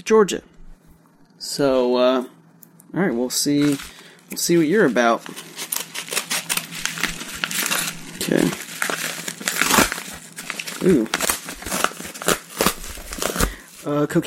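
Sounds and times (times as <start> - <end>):
speech: 0.0 - 0.6, 1.4 - 5.7, 8.3 - 8.6, 10.8 - 11.2, 13.8 - 14.2
unwrapping a mailed package: 3.5 - 14.2.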